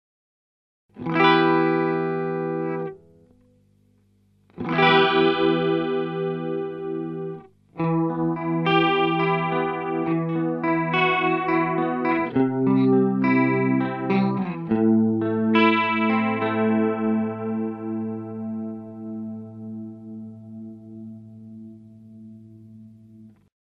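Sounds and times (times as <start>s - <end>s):
Echo Shifter ES3 analog chorus effect: 0.9s - 23.5s.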